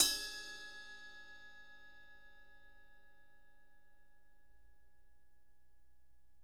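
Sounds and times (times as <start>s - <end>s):
ride cymbal bell: 0.0s - 2.2s.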